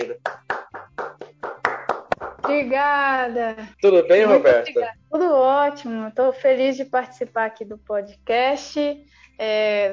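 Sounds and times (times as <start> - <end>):
rhythmic hand claps: 0.0 - 3.0
speech: 2.5 - 9.9.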